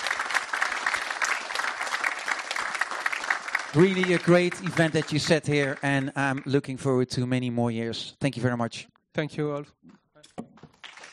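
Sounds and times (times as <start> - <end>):
loud audience applause: 0.0 - 6.7
speech: 3.7 - 10.5.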